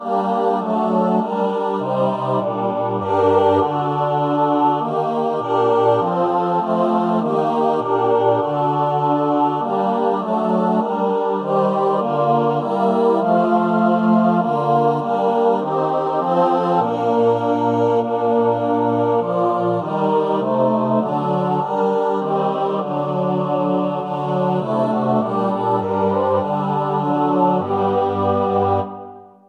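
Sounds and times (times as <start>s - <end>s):
choir singing: 0.0s - 29.4s.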